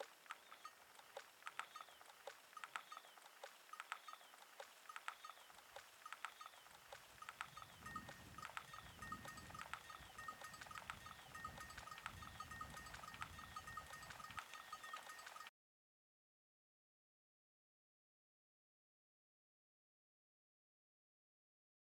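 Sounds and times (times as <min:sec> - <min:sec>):
birds: 0:00.0 - 0:15.5
wind: 0:00.0 - 0:15.5.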